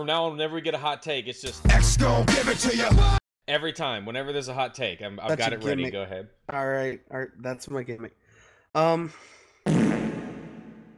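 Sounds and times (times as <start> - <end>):
speech: 0.0 - 10.0
fart sound effect with reverb: 9.6 - 10.9.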